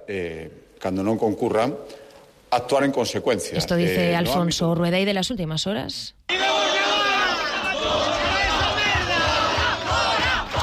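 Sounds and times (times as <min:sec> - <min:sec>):
speech: 0:00.1 - 0:06.5
protesters shouting at a demonstration: 0:06.3 - 0:10.6.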